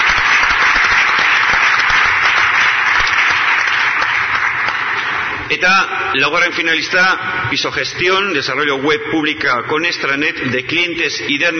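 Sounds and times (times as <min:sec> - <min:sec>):
audience applause: 0:00.0 - 0:05.4
speech: 0:05.5 - 0:11.5.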